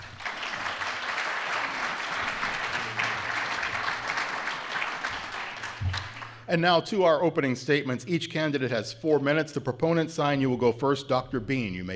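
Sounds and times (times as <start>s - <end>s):
audience applause welcoming debaters: 0.0s - 6.4s
speech: 6.5s - 11.9s.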